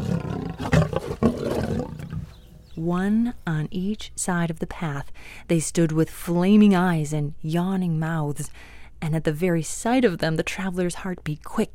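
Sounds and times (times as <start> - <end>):
lions roaring: 0.0 - 2.4
speech: 2.8 - 11.7.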